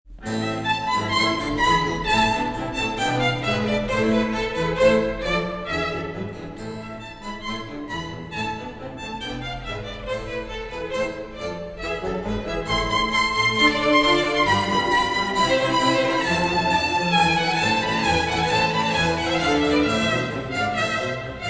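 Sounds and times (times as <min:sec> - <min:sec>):
violin presto in A minor: 0:00.1 - 0:21.4.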